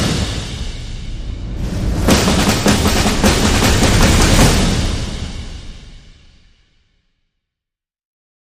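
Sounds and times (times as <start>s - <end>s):
militia drums: 0.0s - 6.5s.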